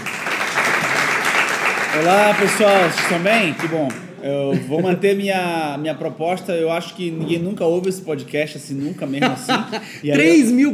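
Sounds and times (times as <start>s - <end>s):
audience applause: 0.0s - 4.0s
speech: 2.0s - 10.7s
laughter: 4.3s - 5.3s, 8.7s - 10.4s.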